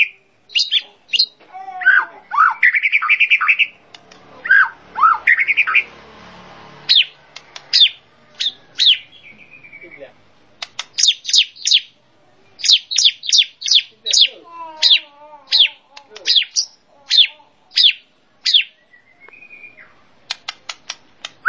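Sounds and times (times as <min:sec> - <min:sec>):
bird chirping and whistling: 0:00.0 - 0:06.1, 0:06.7 - 0:21.4.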